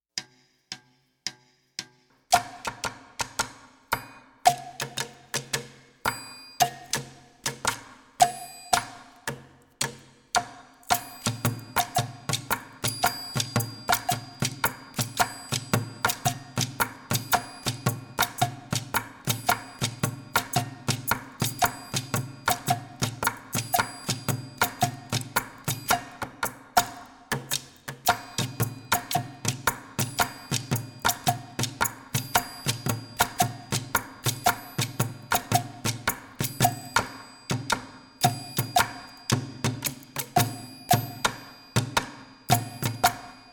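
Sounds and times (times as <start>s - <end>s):
slow student percussion: 0.1s - 43.5s.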